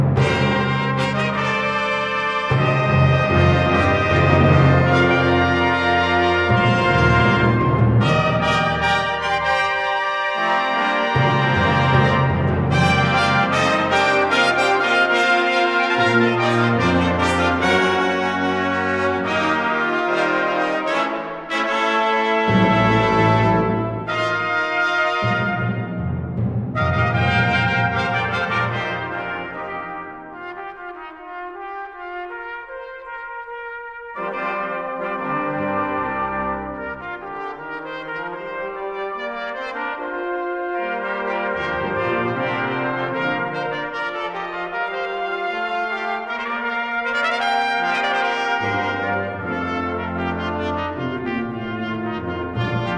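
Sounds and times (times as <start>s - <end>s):
fanfare: 0.2s - 52.9s.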